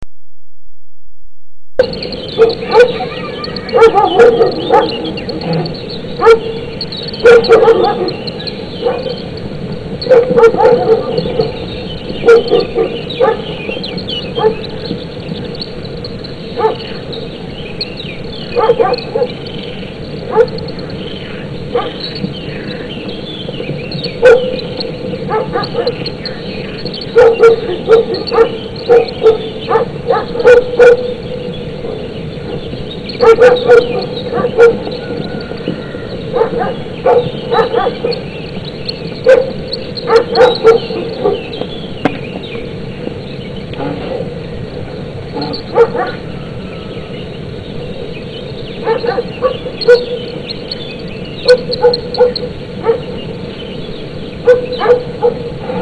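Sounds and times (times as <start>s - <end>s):
husky and Belgian shepherd dogs: 1.8s - 15.0s, 16.5s - 17.2s, 18.4s - 41.8s, 43.7s - 44.4s, 45.3s - 46.4s, 48.7s - 50.5s, 51.4s - 53.3s, 54.4s - 55.7s.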